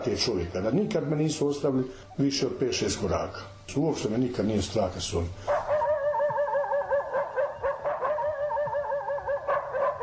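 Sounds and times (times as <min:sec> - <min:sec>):
speech: 0:00.0 - 0:05.6
guard dogs whining and yipping: 0:05.5 - 0:10.0.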